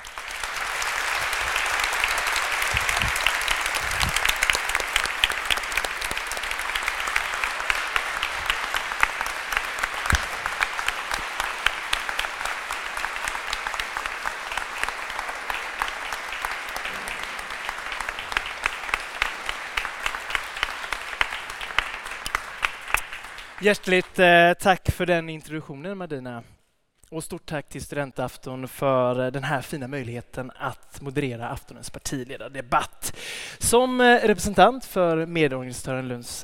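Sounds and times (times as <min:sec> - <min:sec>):
audience applause: 0:00.0 - 0:24.1
speech: 0:23.6 - 0:36.4.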